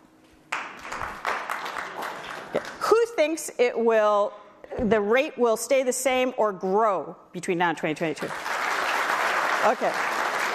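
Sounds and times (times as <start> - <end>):
audience applause as a vote on China's economy: 0.5 - 2.8, 8.3 - 10.5
speech: 2.5 - 8.5, 9.6 - 10.1.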